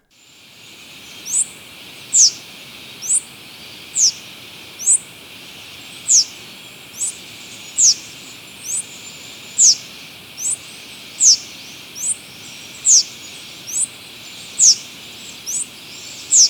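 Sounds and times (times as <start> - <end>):
gray-hooded bush-tanager high thin call notes: 0.2 - 16.4.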